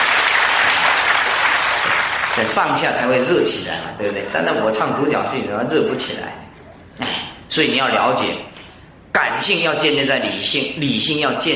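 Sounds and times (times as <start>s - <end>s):
audience applause: 0.0s - 2.6s
speech: 2.4s - 6.4s, 7.0s - 8.5s, 9.2s - 11.5s.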